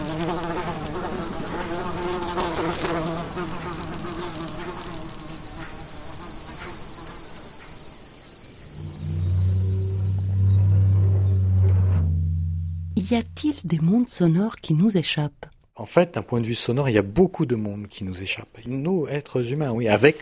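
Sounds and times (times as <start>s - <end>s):
dense chorus of cicadas buzzing: 0.0s - 11.0s
low droning hum: 8.6s - 14.2s
speech: 13.1s - 20.2s.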